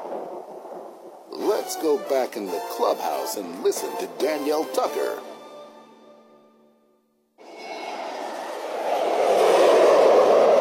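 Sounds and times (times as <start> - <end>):
speech: 1.5 - 5.3
jet airliner flying overhead: 7.4 - 10.5.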